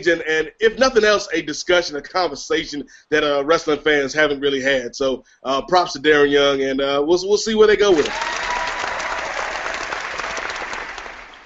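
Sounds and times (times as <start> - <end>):
speech: 0.0 - 8.4
studio audience at a wrestling show applauding: 8.0 - 11.4.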